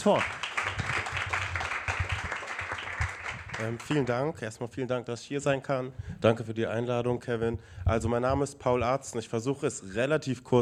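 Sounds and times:
speech: 0:00.0 - 0:00.8, 0:03.6 - 0:10.6
audience applause welcoming a guest at a talk event: 0:00.0 - 0:04.3.

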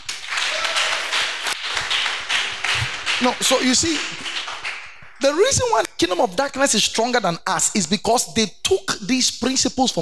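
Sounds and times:
crowd applauding: 0:00.0 - 0:05.9
speech: 0:03.2 - 0:04.4, 0:05.2 - 0:10.0.

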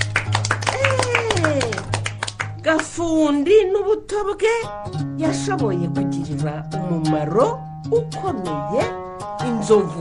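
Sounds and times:
audience clapping at an event: 0:00.0 - 0:03.0
speech: 0:02.7 - 0:09.9.

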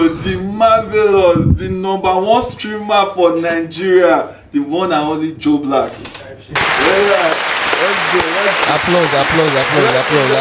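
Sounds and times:
speech: 0:00.2 - 0:10.3
applause: 0:06.6 - 0:10.3.

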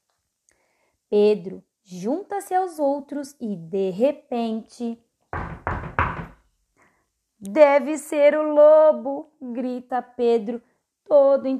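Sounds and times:
speech: 0:01.1 - 0:05.0, 0:07.4 - 0:11.5
firm knocking on a door: 0:05.3 - 0:06.4.

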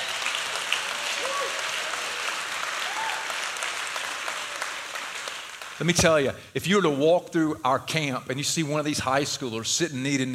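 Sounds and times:
crowd applause: 0:00.0 - 0:06.3
speech: 0:05.8 - 0:10.3.

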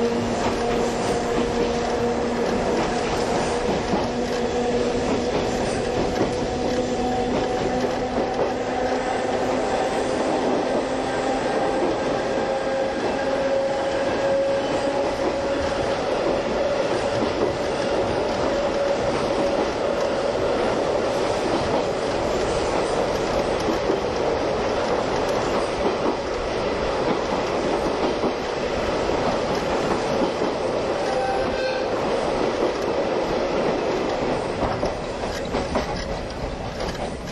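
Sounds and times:
vintage passenger train hauled by an electric locomotive rolling: 0:00.0 - 0:37.3.

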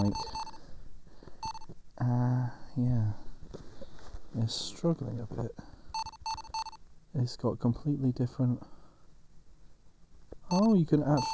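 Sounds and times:
speech: 0:00.0 - 0:00.4, 0:02.0 - 0:03.2, 0:04.4 - 0:05.7, 0:07.1 - 0:08.8, 0:10.5 - 0:11.3
short electronic beep: 0:00.0 - 0:00.6, 0:10.5 - 0:11.3.

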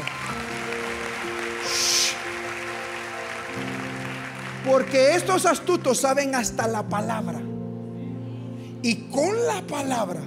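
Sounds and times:
audience applause: 0:00.0 - 0:06.0
speech: 0:04.6 - 0:07.5, 0:08.8 - 0:10.2.

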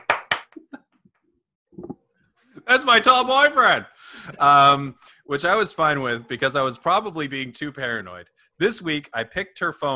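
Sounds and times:
hand claps: 0:00.0 - 0:00.8
speech: 0:02.7 - 0:09.9.

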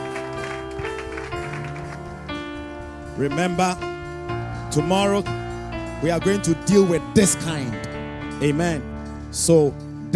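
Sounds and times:
audience clapping: 0:00.0 - 0:02.5
speech: 0:03.2 - 0:03.9, 0:04.7 - 0:05.4, 0:06.0 - 0:10.1.

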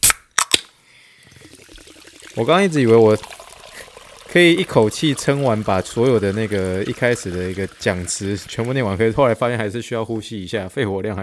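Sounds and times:
sparkling water container opening crack and pops: 0:00.0 - 0:00.8
sparkling water fizzing hiss: 0:01.1 - 0:10.4
speech: 0:02.4 - 0:03.3, 0:04.4 - 0:11.2.

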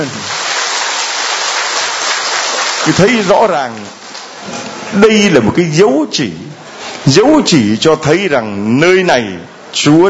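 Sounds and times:
loud round of applause: 0:00.0 - 0:04.4
speech: 0:02.8 - 0:10.0.

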